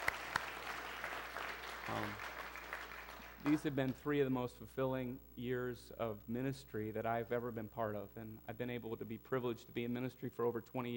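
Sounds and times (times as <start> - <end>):
audience applause: 0.0 - 3.9
speech: 1.9 - 2.3, 3.4 - 10.9.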